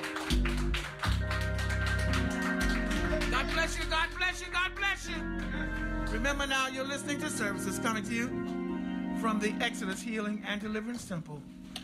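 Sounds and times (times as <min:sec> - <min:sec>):
audience clapping hands in church sanctuary: 0:00.0 - 0:06.4
sustained low organ or bass chords: 0:00.0 - 0:11.8
speech: 0:04.0 - 0:08.6, 0:09.2 - 0:11.6.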